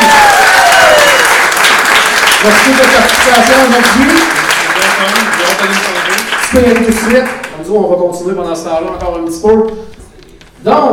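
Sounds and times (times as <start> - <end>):
applause: 0.0 - 7.6
speech: 2.4 - 4.4, 5.0 - 5.9, 6.5 - 10.0, 10.6 - 10.9.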